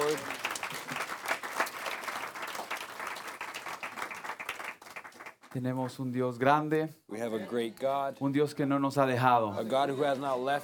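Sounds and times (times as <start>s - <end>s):
audience applauding: 0.0s - 5.6s
speech: 5.5s - 10.6s.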